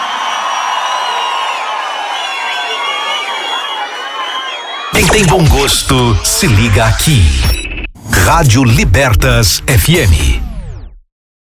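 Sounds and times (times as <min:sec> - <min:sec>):
crowd cheering: 0:00.0 - 0:07.1
speech: 0:05.0 - 0:10.4.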